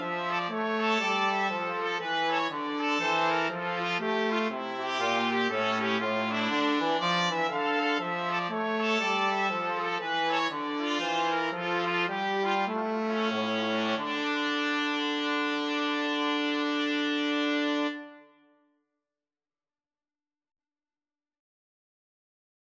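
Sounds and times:
trombone playing a bourree: 0.0 - 18.1
two trumpets playing a bourree: 0.0 - 18.3.

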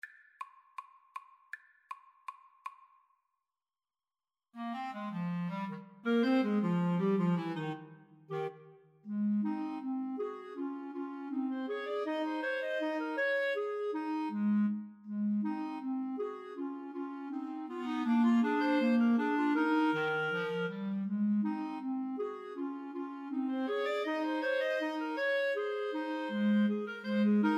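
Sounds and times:
clarinet trio: 4.6 - 27.5.

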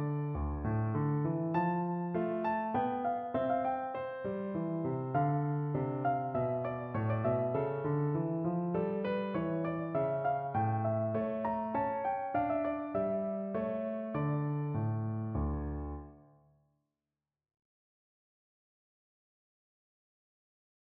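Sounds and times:
minuet in D minor on piano: 0.0 - 16.3.

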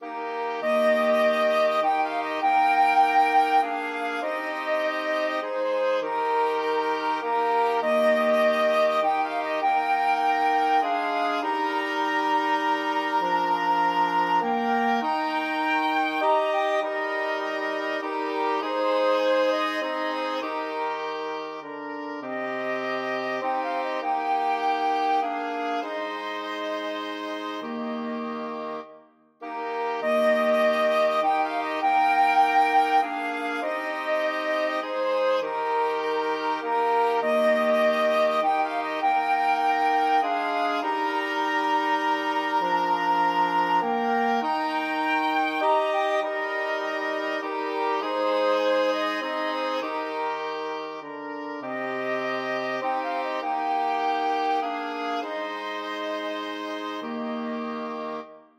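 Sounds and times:
flexible mixed ensemble of four players: 0.0 - 58.4.

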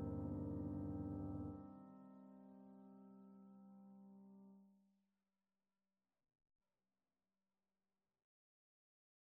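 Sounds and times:
piano prelude: 0.0 - 4.5.

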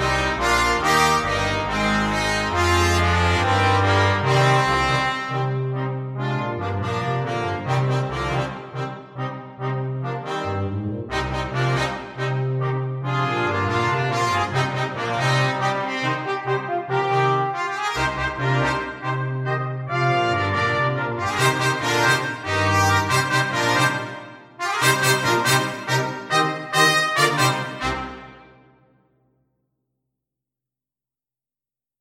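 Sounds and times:
rock brass quintet playing: 0.0 - 28.6.

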